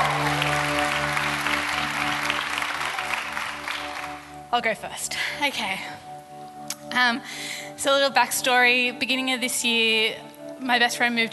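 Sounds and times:
audience applause: 0:00.0 - 0:04.4
speech: 0:04.6 - 0:06.0, 0:06.9 - 0:11.3.

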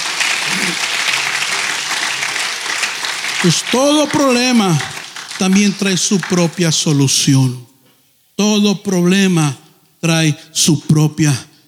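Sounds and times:
audience applause: 0:00.0 - 0:07.5
speech: 0:03.4 - 0:07.7, 0:08.4 - 0:11.5.

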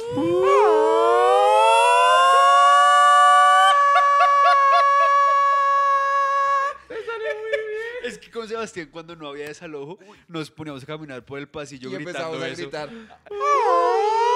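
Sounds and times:
voice imitating an air-raid siren: 0:00.0 - 0:04.2, 0:13.3 - 0:14.3
speech: 0:00.1 - 0:00.5, 0:08.6 - 0:14.1
laughter: 0:03.5 - 0:08.3.

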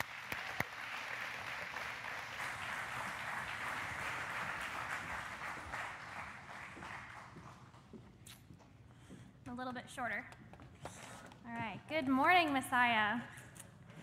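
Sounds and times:
audience applauding to welcome speakers: 0:00.0 - 0:08.0
speech: 0:09.6 - 0:13.4.

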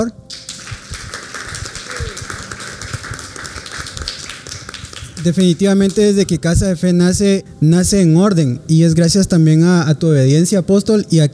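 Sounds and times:
speech: 0:00.0 - 0:00.3, 0:05.2 - 0:11.3
strong applause: 0:00.3 - 0:06.2.

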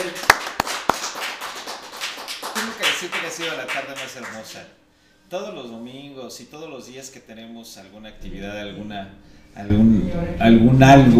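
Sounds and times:
audience applause: 0:00.0 - 0:04.4
speech: 0:03.0 - 0:11.1.

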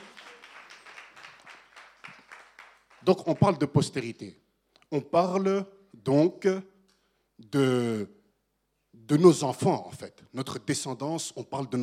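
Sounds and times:
audience applause: 0:00.0 - 0:03.6
speech: 0:03.0 - 0:06.7, 0:07.4 - 0:08.2, 0:09.0 - 0:11.8.

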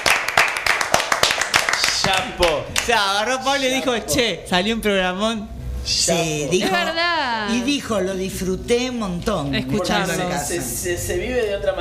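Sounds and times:
applause: 0:00.0 - 0:03.0
speech: 0:02.1 - 0:11.8.

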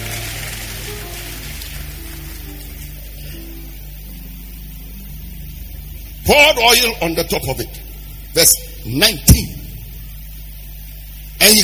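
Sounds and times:
audience clapping: 0:00.0 - 0:03.4
speech: 0:06.3 - 0:09.6, 0:11.4 - 0:11.6.

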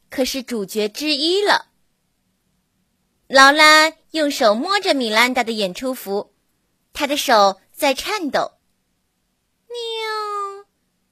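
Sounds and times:
speech: 0:00.2 - 0:01.7, 0:03.3 - 0:06.3, 0:06.9 - 0:08.6, 0:09.7 - 0:10.4
person imitating a cat meow: 0:09.7 - 0:10.7.

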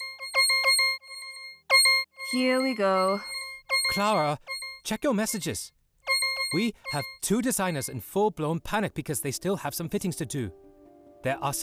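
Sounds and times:
phone ringing: 0:00.0 - 0:08.0
speech: 0:02.3 - 0:05.8, 0:06.5 - 0:10.6, 0:11.2 - 0:11.6.

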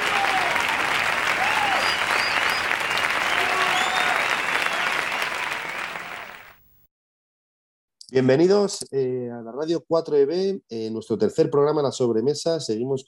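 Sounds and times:
audience applause: 0:00.0 - 0:06.6
speech: 0:08.1 - 0:13.0.

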